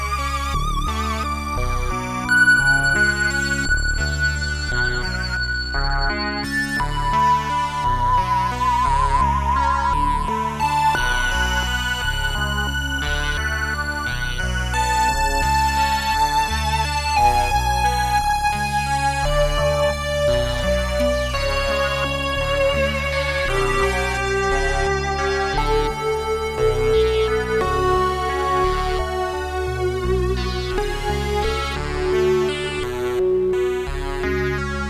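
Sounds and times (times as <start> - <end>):
synthesizer dual narrow pulse-width tone: 0.0 - 34.8.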